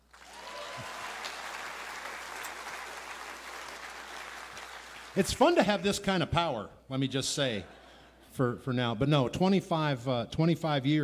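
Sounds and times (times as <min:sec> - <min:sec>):
audience applause: 0:00.0 - 0:05.7
speech: 0:05.2 - 0:07.8, 0:08.4 - 0:11.0.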